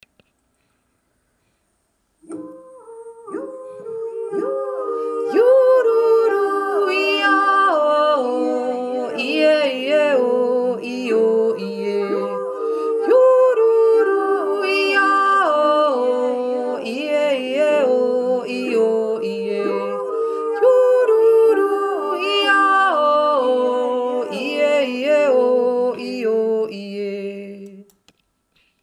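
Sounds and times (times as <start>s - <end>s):
Pygmy yodelling: 2.3s - 27.5s.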